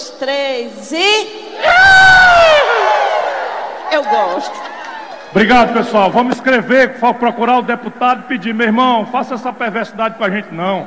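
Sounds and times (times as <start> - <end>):
speech: 0.2 - 2.4, 3.9 - 4.7, 5.3 - 10.8
crowd booing in unison: 1.5 - 6.2.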